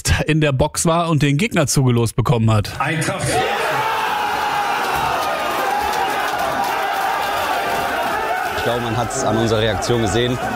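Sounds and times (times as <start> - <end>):
speech: 0.2 - 3.6, 8.6 - 10.5
large crowd cheering: 3.0 - 10.5.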